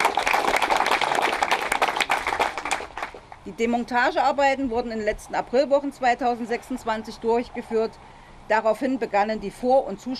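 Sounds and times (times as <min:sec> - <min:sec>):
applause: 0:00.0 - 0:03.4
speech: 0:03.5 - 0:10.1.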